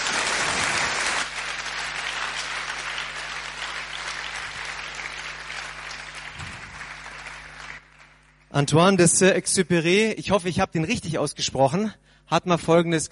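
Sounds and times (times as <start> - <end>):
audience applause: 0.0 - 8.4
speech: 8.6 - 13.1.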